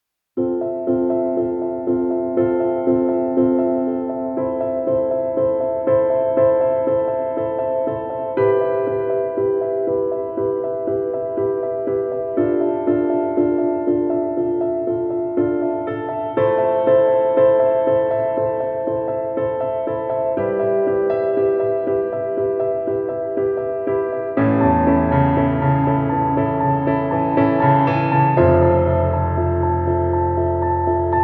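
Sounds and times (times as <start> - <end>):
piano: 0.0 - 31.2.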